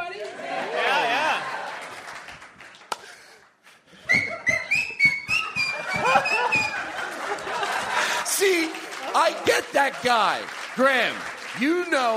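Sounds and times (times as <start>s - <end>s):
audience laughter: 0.3s - 2.1s, 5.4s - 10.4s
person whistling during a comedy show: 4.0s - 6.8s
speech: 9.9s - 12.1s.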